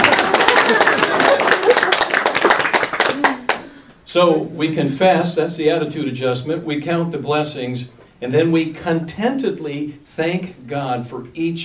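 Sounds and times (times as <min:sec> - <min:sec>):
audience applause: 0:00.0 - 0:03.6
speech: 0:04.1 - 0:11.6.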